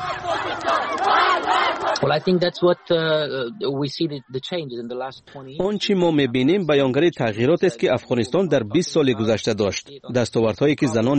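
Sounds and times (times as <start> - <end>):
crowd of women in burqas chanting at a march in Kunduz: 0.0 - 2.1
speech: 2.0 - 11.1.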